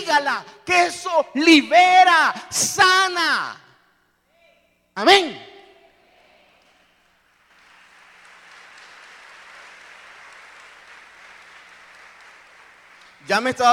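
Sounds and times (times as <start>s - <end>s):
speech: 0.0s - 3.6s, 5.0s - 5.5s, 13.3s - 13.7s
audience applause: 7.2s - 13.7s.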